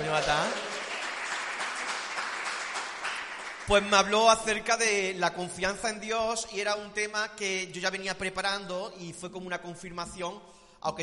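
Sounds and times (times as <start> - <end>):
crowd applause: 0.0 - 4.0
speech: 0.1 - 0.7, 3.7 - 11.0.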